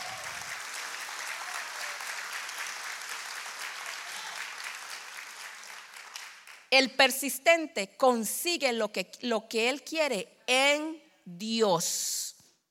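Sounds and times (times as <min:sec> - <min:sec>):
audience applause: 0:00.0 - 0:06.6
speech: 0:06.7 - 0:12.2.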